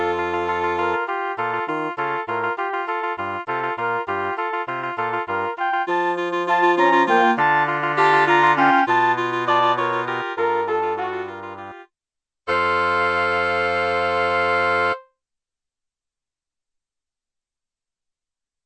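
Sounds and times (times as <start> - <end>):
woodwind: 0.0 - 11.8, 12.5 - 15.0.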